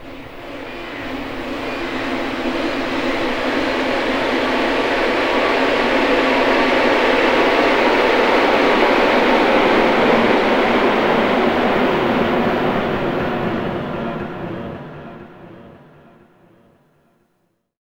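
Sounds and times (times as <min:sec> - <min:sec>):
string effects: 0:00.0 - 0:16.7.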